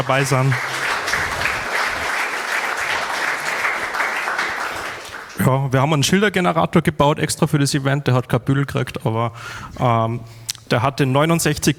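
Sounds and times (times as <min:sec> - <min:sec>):
speech: 0:00.0 - 0:00.8, 0:05.4 - 0:11.7
audience clapping: 0:00.0 - 0:05.5.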